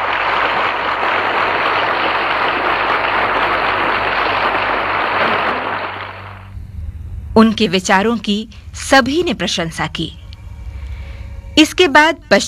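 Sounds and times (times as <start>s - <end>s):
large crowd applauding loudly in a hall: 0.0s - 6.5s
speech: 7.4s - 10.2s, 11.6s - 12.4s.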